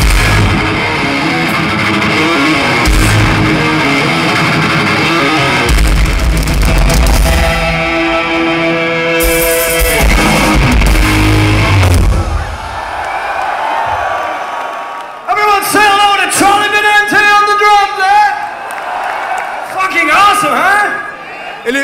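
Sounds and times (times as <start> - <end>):
live thrash metal band performance: 0.0 - 12.9
crowd noise: 0.0 - 21.8.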